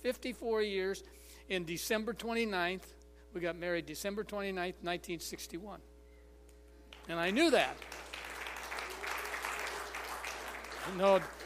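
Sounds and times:
speech: 0.0 - 5.9, 7.1 - 8.0, 10.8 - 11.4
crowd applauding: 7.0 - 11.4.

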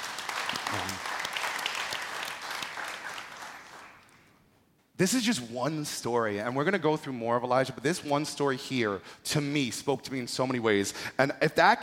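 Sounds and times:
audience clapping: 0.0 - 4.3
speech: 5.0 - 11.8.

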